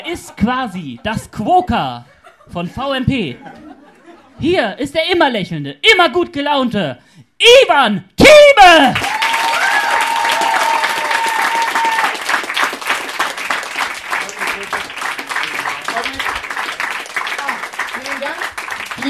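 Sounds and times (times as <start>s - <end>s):
speech: 0.1s - 3.7s, 4.4s - 9.2s
laughter: 2.0s - 4.5s, 14.1s - 16.5s
audience applause: 9.0s - 19.0s.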